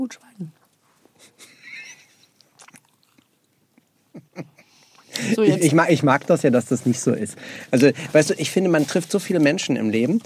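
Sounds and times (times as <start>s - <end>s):
speech: 0.0s - 0.6s, 5.2s - 10.2s
biting and chewing on a waffle: 2.4s - 3.4s.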